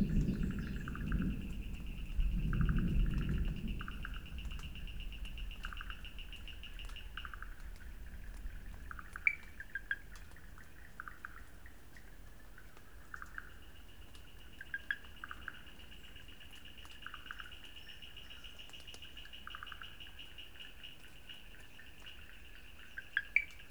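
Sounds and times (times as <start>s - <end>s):
thunder in Sri Lanka: 0.0s - 9.0s
Wood Frogs in Sri Lanka: 0.0s - 23.6s.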